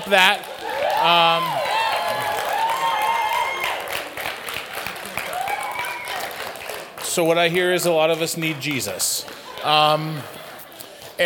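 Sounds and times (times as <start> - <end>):
speech: 0.0 - 1.6, 7.2 - 10.4
audience clapping: 0.0 - 11.2
whoops and cheering voices: 0.6 - 4.1, 5.0 - 6.4.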